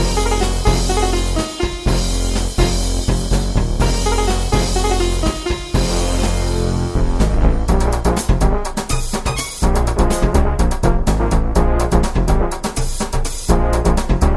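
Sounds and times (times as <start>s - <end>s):
virtual sitar in latin funk Indian fusion: 0.0s - 3.1s, 3.8s - 7.5s
virtual timbale percussion: 0.0s - 9.9s
virtual brass in latin funk Indian fusion: 0.0s - 14.3s.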